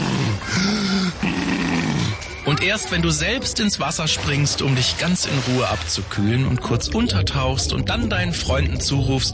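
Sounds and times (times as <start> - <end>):
person voicing heavy walrus-like breathing of a breaststroke swimmer: 0.1 - 2.2
speech: 2.6 - 9.3.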